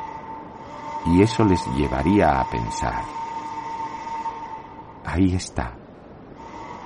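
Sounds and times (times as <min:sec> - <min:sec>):
foghorn of a bay: 0:00.0 - 0:05.0, 0:06.4 - 0:06.8
speech: 0:01.0 - 0:03.2, 0:05.2 - 0:05.8.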